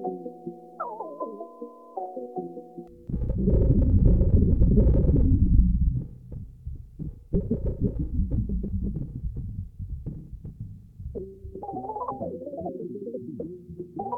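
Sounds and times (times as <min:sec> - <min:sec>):
drum: 0:03.1 - 0:11.6.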